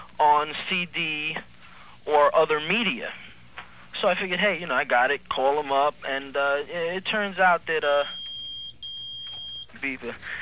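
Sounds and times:
speech: 0:00.3 - 0:03.2, 0:04.0 - 0:08.2, 0:09.8 - 0:10.4
low battery warning beep: 0:07.8 - 0:10.0.

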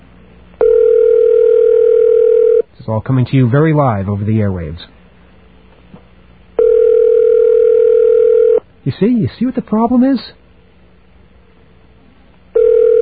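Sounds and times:
telephone line ringing: 0:00.6 - 0:02.6, 0:06.6 - 0:08.6, 0:12.6 - 0:13.0
speech: 0:02.9 - 0:05.0, 0:08.8 - 0:10.4.

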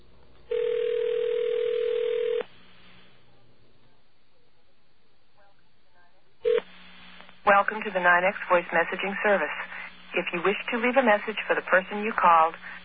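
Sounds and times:
telephone dial tone: 0:00.5 - 0:02.5
speech: 0:07.6 - 0:12.8.

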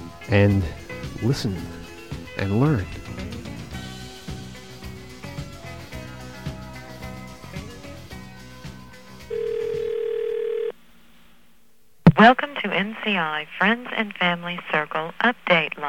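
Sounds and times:
speech: 0:00.3 - 0:01.8, 0:02.4 - 0:03.0, 0:12.2 - 0:15.8
telephone dial tone: 0:09.3 - 0:10.8.

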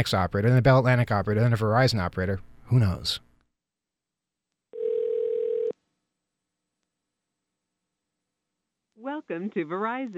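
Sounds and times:
speech: 0:00.0 - 0:03.3, 0:09.0 - 0:10.1
telephone dial tone: 0:04.8 - 0:05.8.

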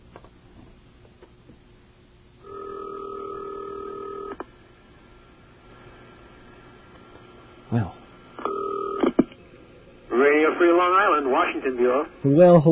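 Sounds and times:
telephone ringing: 0:02.4 - 0:04.4, 0:08.4 - 0:09.2
speech: 0:07.8 - 0:08.0, 0:10.3 - 0:12.7.

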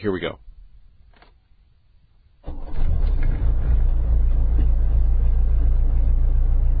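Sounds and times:
diesel car engine cranking and idling: 0:02.5 - 0:06.7.

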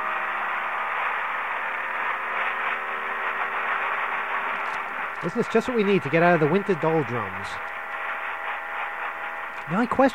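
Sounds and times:
speedboat engine running flat out: 0:00.0 - 0:10.1
speech: 0:05.2 - 0:07.7, 0:09.7 - 0:10.1.

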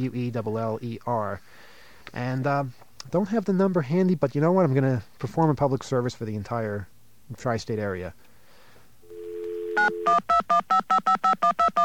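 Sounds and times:
speech: 0:00.0 - 0:08.3, 0:09.8 - 0:11.8
telephone dial tone: 0:09.0 - 0:11.8
telephone keypad beeps: 0:09.2 - 0:11.8.

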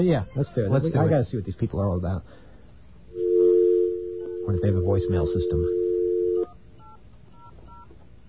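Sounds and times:
speech: 0:00.0 - 0:02.5, 0:04.5 - 0:05.8
telephone tone: 0:03.2 - 0:07.9.

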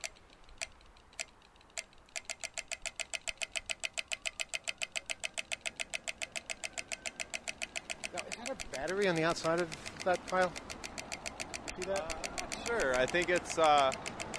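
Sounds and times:
pedestrian crossing signal clicking at intersection: 0:00.0 - 0:14.3
speech: 0:08.8 - 0:10.7, 0:11.8 - 0:14.1.

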